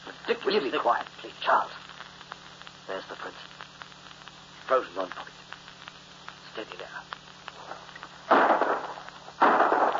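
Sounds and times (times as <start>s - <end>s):
speech: 0.3s - 1.8s, 2.9s - 3.5s, 4.7s - 5.4s, 6.6s - 7.2s
gunshot at a bird while hunting: 8.3s - 9.9s.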